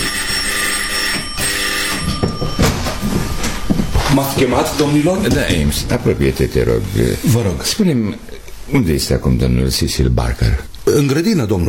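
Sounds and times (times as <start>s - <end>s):
bell ringing to summon a butler: 0.0s - 5.7s
speech: 4.2s - 11.6s.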